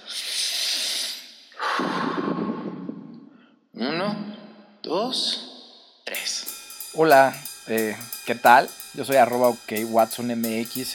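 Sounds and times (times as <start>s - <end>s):
breathing during a guided breathing exercise: 0.0s - 2.5s, 3.2s - 3.6s
speech: 4.9s - 5.4s, 7.0s - 10.9s.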